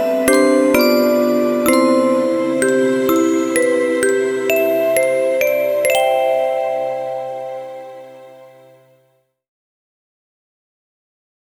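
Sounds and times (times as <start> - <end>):
music box version: 0.0 - 9.0.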